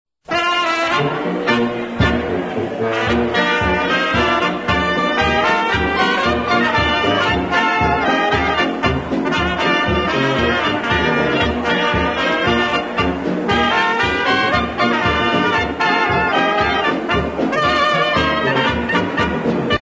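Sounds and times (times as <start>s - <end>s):
orchestra playing a polka: 0.2s - 19.7s.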